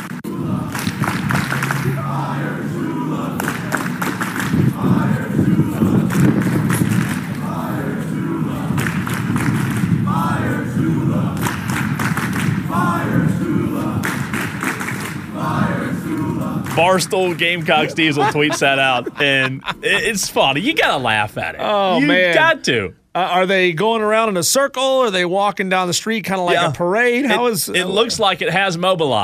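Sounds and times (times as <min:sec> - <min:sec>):
protest crowd chanting on a college campus: 0:00.0 - 0:20.0
rhythmic thumping: 0:00.0 - 0:21.6
laughter: 0:16.7 - 0:22.6, 0:26.5 - 0:28.2
speech: 0:16.8 - 0:29.2.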